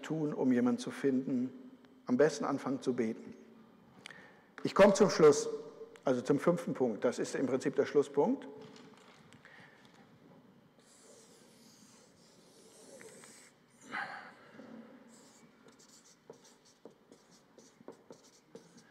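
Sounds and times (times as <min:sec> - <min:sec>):
speech: 0:00.1 - 0:03.4, 0:04.6 - 0:08.8
pen writing by hand: 0:10.8 - 0:13.6, 0:15.1 - 0:18.9.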